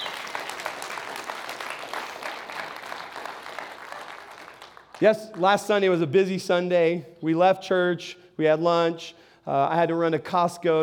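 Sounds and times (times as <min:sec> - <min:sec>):
audience cheering and applauding: 0:00.0 - 0:05.2
speech: 0:05.0 - 0:10.8.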